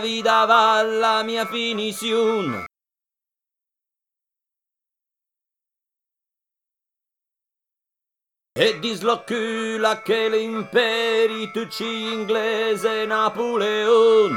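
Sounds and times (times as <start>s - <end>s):
tenor singing: 0.0s - 2.7s, 8.6s - 14.3s.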